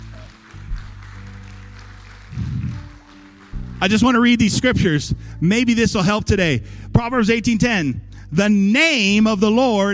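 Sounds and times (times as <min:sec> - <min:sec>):
crowd applauding: 0:00.0 - 0:05.1
sustained low keyboard chords: 0:00.0 - 0:09.9
speech: 0:03.8 - 0:09.9.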